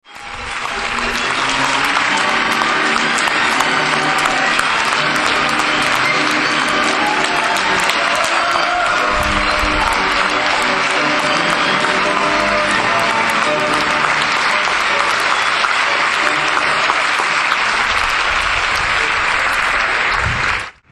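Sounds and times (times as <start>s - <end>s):
applause: 0.0s - 20.9s.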